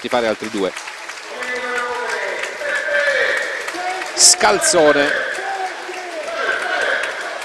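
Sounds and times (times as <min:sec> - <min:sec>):
speech: 0:00.0 - 0:00.9, 0:04.2 - 0:05.4
stadium crowd applauding a substituted player: 0:00.0 - 0:07.4.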